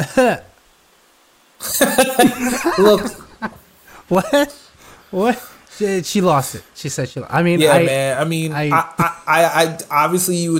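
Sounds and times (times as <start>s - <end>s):
speech: 0.1s - 0.5s, 1.6s - 10.5s
laughter: 1.6s - 4.4s
person imitating coughing through a face mask: 1.7s - 3.3s.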